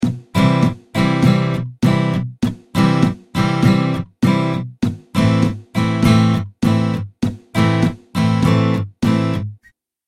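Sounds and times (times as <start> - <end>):
guitar strumming pattern: 0.0 - 9.7.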